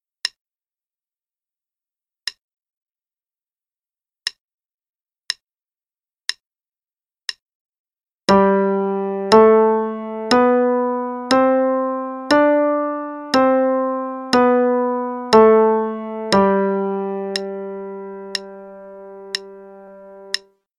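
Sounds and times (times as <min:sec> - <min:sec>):
5 finger pattern in G: 0:08.3 - 0:20.5.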